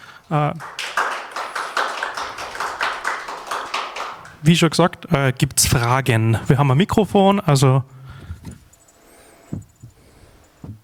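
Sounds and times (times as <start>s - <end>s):
speech: 0.3s - 0.8s, 4.4s - 8.6s
audience applause: 0.3s - 4.8s.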